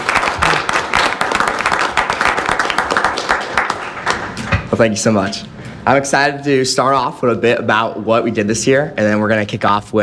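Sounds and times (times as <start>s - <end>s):
audience applause: 0.0s - 4.4s
speech: 4.8s - 10.0s.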